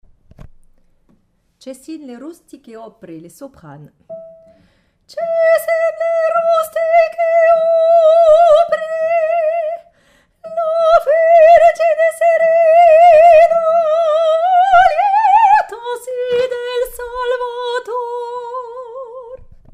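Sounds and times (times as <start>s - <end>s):
soprano singing: 5.1s - 19.4s.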